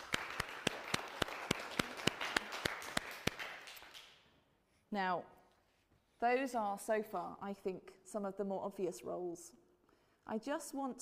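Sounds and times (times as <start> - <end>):
audience applause: 0.0 - 4.1
speech: 4.9 - 5.4, 6.2 - 9.6, 10.3 - 11.0.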